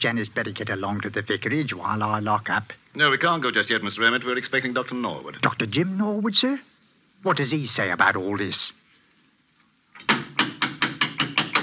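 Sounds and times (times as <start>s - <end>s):
speech: 0.0s - 8.8s
knocking on a wooden vestry door: 10.0s - 11.6s.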